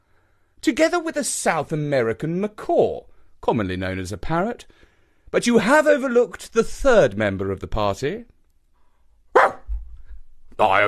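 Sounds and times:
speech: 0.6 - 8.4, 10.6 - 10.8
dog barking: 9.3 - 9.8.

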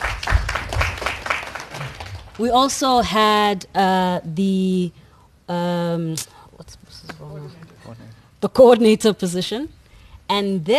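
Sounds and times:
audience clapping: 0.0 - 2.4
speech: 2.4 - 10.7.

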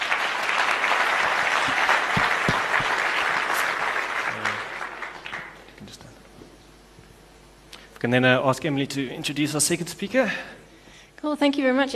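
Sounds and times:
audience applause: 0.0 - 5.7
speech: 8.0 - 10.6, 11.2 - 11.9.

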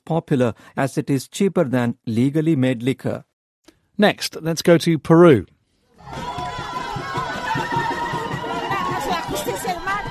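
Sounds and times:
speech: 0.1 - 3.3, 4.0 - 6.3
crowd celebrating outside a courthouse in Lima, Peru: 6.0 - 10.0.

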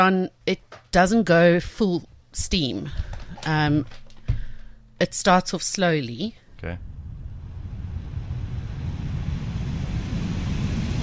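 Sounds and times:
speech: 0.0 - 4.0, 5.0 - 6.9
heater vent blowing a steady flow of air: 6.6 - 11.0.

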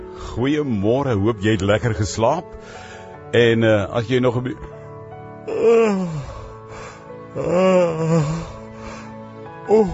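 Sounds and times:
speech: 0.3 - 4.8, 5.6 - 6.3, 7.4 - 8.4, 9.7 - 9.9
person yawning in the morning: 5.5 - 6.6, 7.4 - 8.6, 9.7 - 9.9.

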